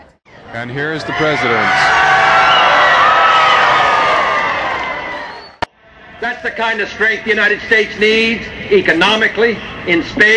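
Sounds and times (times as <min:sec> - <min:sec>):
speech: 0:00.5 - 0:02.2, 0:06.4 - 0:10.3
crowd outburst: 0:00.8 - 0:06.6.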